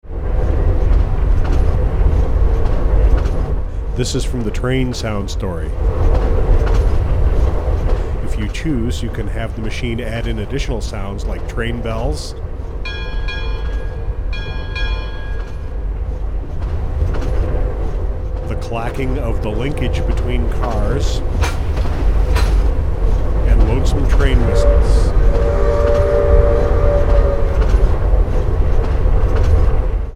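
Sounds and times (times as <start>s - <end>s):
train: 0.0s - 30.1s.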